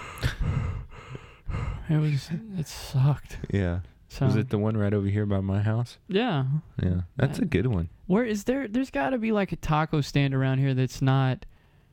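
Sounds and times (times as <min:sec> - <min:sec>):
person imitating mouth breathing: 0:00.0 - 0:02.2
speech: 0:01.9 - 0:11.5.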